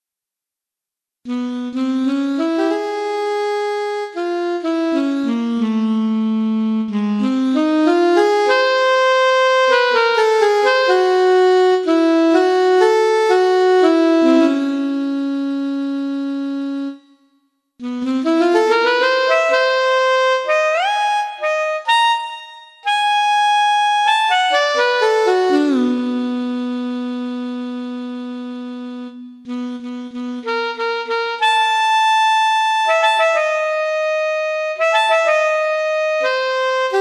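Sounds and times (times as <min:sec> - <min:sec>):
saxophone solo: 0:01.3 - 0:17.2, 0:17.8 - 0:36.9.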